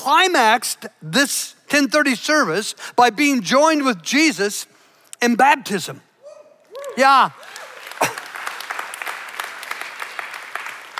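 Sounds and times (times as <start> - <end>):
speech: 0.0 - 6.1, 7.0 - 7.5
polite light golf clap from an audience: 6.7 - 10.9.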